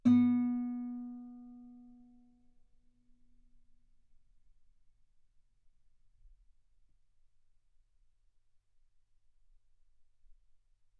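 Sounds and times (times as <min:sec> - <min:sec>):
guitar note B3: 0:00.0 - 0:01.8.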